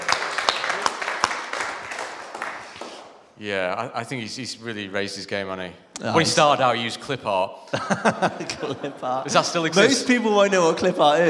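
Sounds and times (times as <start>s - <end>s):
round of applause from a few people: 0.0s - 3.4s
speech: 3.4s - 11.2s
laughter: 7.7s - 11.2s.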